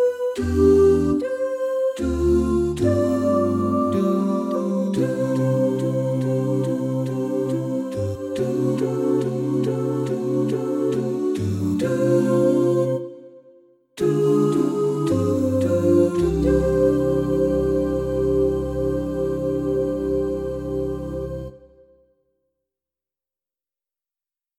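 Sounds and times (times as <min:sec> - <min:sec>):
bass: 0:00.4 - 0:01.2, 0:02.0 - 0:13.0, 0:14.0 - 0:21.8.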